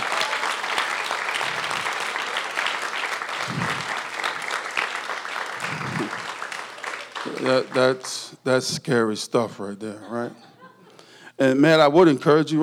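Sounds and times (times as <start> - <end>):
audience clapping for worship band: 0.0 - 8.6
speech: 7.4 - 10.5, 11.4 - 12.6
laughter: 9.7 - 11.2.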